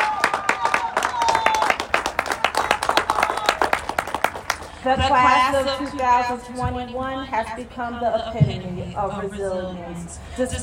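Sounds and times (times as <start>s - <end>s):
crowd clapping: 0.0s - 4.8s
speech: 4.8s - 10.6s.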